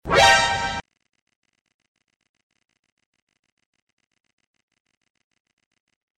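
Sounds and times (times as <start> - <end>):
alert sound: 0.0 - 0.8.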